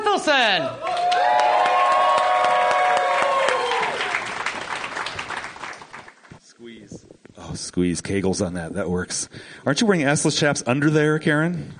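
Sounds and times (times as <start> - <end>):
speech: 0.2 - 1.4, 7.6 - 11.7
audience whoops and shouts: 0.7 - 4.2
audience applause for a comic at a comedy show: 0.8 - 6.4.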